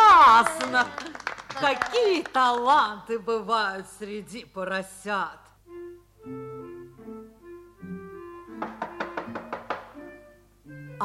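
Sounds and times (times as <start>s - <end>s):
speech: 0.7s - 5.4s
knocking on a door: 8.5s - 10.0s.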